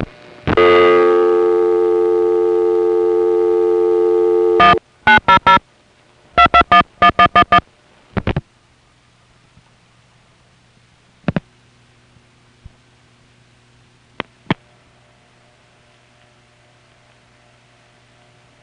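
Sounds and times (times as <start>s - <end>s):
long sustained harmonic telephone tone on a call routed from Van Nuys: 0.6s - 5.6s, 6.4s - 7.6s.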